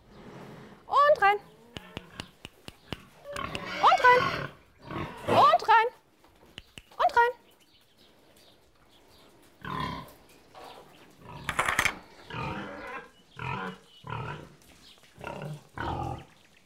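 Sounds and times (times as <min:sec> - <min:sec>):
pigs grunting: 0:00.0 - 0:05.6, 0:09.6 - 0:10.2, 0:11.2 - 0:14.6, 0:15.2 - 0:16.3
speech: 0:01.3 - 0:01.5.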